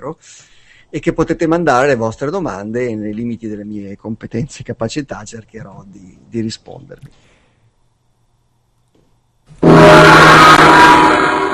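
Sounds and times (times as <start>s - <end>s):
speech: 0.0s - 7.3s
loud gong strike: 9.6s - 11.5s.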